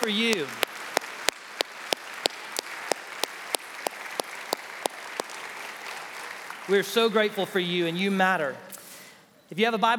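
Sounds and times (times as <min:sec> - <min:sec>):
speech: 0:00.0 - 0:00.7, 0:06.7 - 0:08.7, 0:09.5 - 0:09.9
sharp steady claps: 0:00.0 - 0:06.8
crowd clapping and noise: 0:00.0 - 0:08.0.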